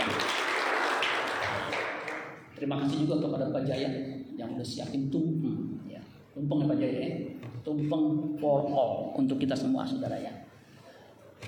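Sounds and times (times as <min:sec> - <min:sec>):
crowd clapping: 0:00.0 - 0:02.5
speech: 0:02.6 - 0:10.4.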